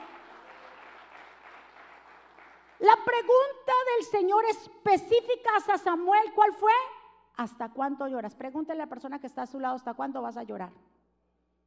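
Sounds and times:
audience applause: 0.0s - 2.8s
speech: 2.8s - 10.9s.

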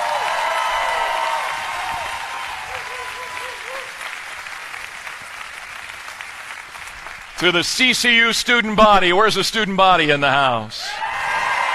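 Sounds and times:
crowd applause: 0.0s - 8.2s, 10.9s - 11.7s
speech: 7.4s - 11.0s.

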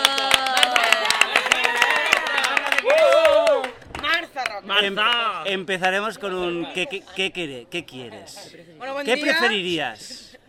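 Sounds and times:
applause: 0.0s - 4.1s
speech: 4.7s - 10.2s.

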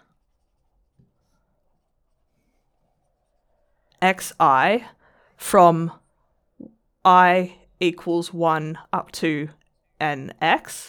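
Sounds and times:
handwriting scratching strokes: 0.0s - 3.6s
speech: 4.0s - 6.0s, 7.0s - 10.8s.

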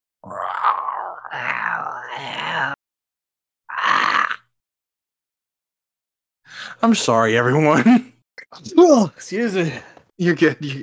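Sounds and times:
person making growling monster voice noises: 0.2s - 2.8s, 3.7s - 4.6s
speech: 1.1s - 2.8s, 6.8s - 10.8s.

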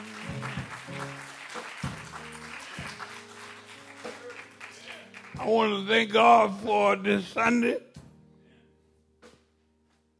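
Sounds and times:
audience clapping hands: 0.0s - 6.1s
speech: 5.4s - 7.9s.

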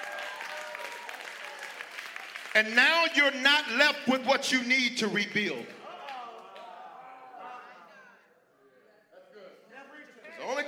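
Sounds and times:
audience clapping: 0.0s - 3.1s, 5.4s - 6.9s
speech: 2.6s - 5.8s.

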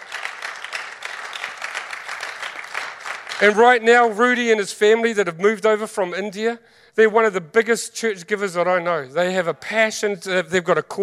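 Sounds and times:
audience applause: 0.0s - 3.8s
speech: 3.4s - 11.0s.

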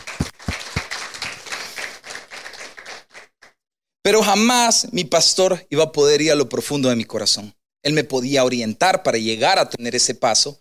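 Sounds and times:
audience applause: 0.0s - 3.6s
speech: 4.1s - 10.5s.

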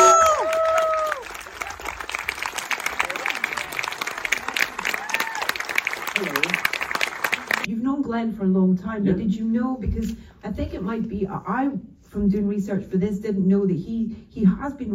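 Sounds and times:
high whoops and cheers: 0.0s - 2.0s, 4.4s - 5.8s
audience applause: 0.0s - 7.7s
speech: 8.2s - 14.9s.

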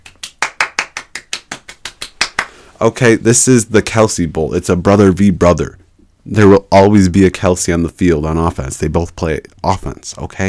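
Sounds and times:
hand clapping: 0.0s - 2.6s
speech: 2.8s - 10.4s.

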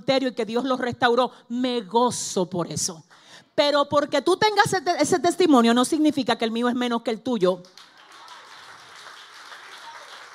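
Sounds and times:
speech: 0.1s - 7.9s
crowd applause: 7.8s - 10.3s.

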